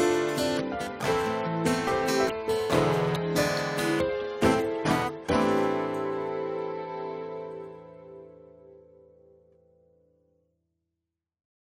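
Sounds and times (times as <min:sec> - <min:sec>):
French song: 0:00.0 - 0:09.0.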